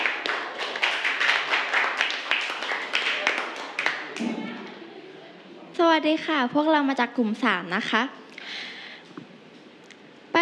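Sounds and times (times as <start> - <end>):
classroom applause for group representative: 0.0 - 4.8
speech: 5.8 - 8.2.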